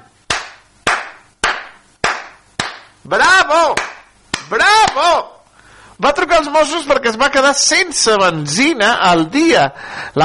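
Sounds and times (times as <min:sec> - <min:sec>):
applause: 0:00.3 - 0:02.9
speech: 0:03.0 - 0:03.9, 0:04.5 - 0:05.3, 0:06.0 - 0:10.2.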